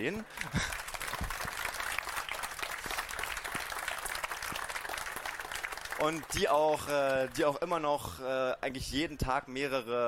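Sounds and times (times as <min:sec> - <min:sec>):
speech: 0:00.0 - 0:00.8, 0:06.0 - 0:10.0
audience applause: 0:00.0 - 0:07.6.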